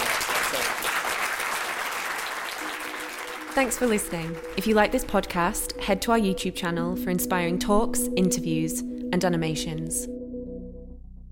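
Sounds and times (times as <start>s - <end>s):
audience applause: 0.0s - 5.0s
speech: 3.6s - 10.2s.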